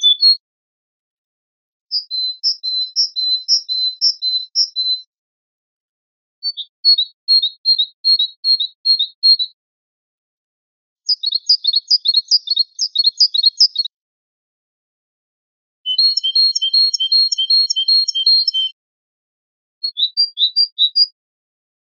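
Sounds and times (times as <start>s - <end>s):
blue tit singing in spring: 0.0s - 0.4s, 1.9s - 5.1s, 6.4s - 9.5s, 11.1s - 13.9s, 15.9s - 18.8s, 19.8s - 21.2s
great tit singing in spring: 0.0s - 0.4s, 1.9s - 5.1s, 11.1s - 13.9s, 15.9s - 18.8s, 19.9s - 21.2s.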